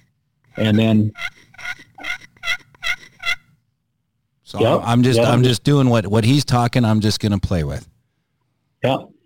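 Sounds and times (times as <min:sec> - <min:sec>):
speech: 0:00.6 - 0:01.3, 0:04.5 - 0:07.9, 0:08.8 - 0:09.1
turkey yelp on a glass pot call: 0:01.1 - 0:03.5.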